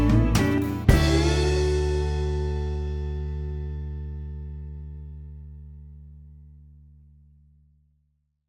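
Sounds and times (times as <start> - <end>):
country ballad for singing: 0.0 - 5.7.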